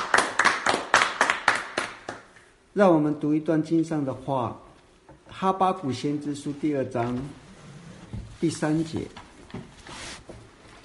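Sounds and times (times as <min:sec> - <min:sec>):
congregation clapping in unison: 0:00.0 - 0:02.4
speech: 0:02.8 - 0:04.6, 0:05.4 - 0:07.4, 0:08.4 - 0:09.6.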